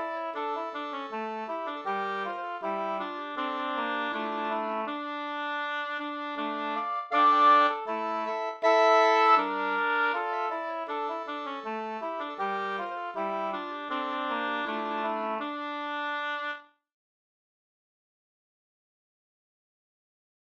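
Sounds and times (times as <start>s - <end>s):
folk walking tune: 0.2s - 16.2s.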